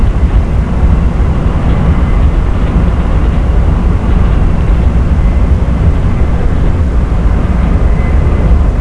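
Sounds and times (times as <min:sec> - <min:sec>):
train running: 0:00.0 - 0:08.7.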